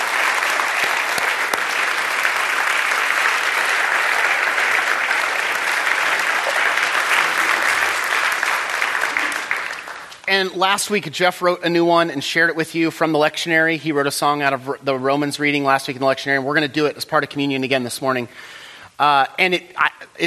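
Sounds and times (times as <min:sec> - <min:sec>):
audience applauding the musicians: 0:00.0 - 0:10.3
speech: 0:10.3 - 0:20.2.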